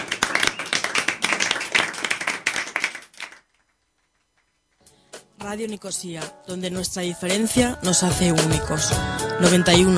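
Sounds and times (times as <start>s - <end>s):
applause, hands clapping: 0.0s - 3.8s
speech: 5.4s - 9.9s.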